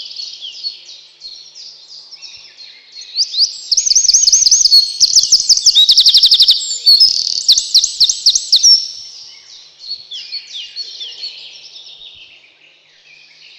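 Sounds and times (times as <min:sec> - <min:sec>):
Eurasian wren shrill trilling song: 0:02.2 - 0:12.4.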